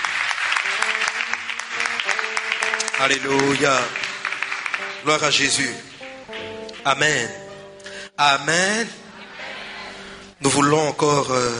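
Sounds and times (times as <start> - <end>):
worshippers at a Christian service clapping to acclaim God: 0.0 - 7.8
speech: 3.0 - 4.0, 5.0 - 5.9, 6.8 - 7.4, 8.2 - 9.0, 10.4 - 11.5
laughter: 7.3 - 8.0, 8.8 - 10.4.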